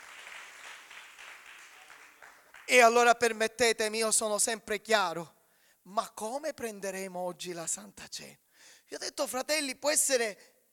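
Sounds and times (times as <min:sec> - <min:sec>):
church congregation clapping: 0:00.0 - 0:03.1
speech: 0:02.7 - 0:10.5.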